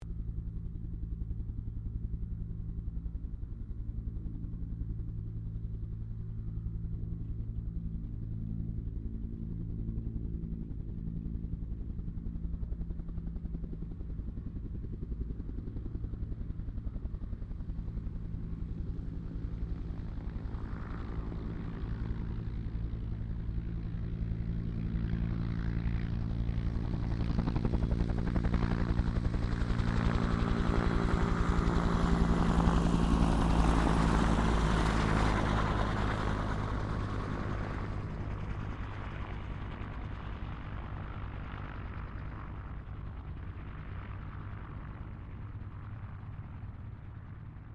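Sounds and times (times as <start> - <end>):
distant Bell UH-1 Iroquois helicopter taking off: 0.0 - 47.7.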